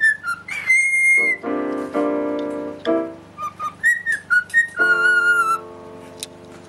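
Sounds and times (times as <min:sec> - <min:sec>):
cockatiel whistling: 0:00.0 - 0:01.5, 0:03.4 - 0:05.7
piano chords: 0:00.0 - 0:06.6.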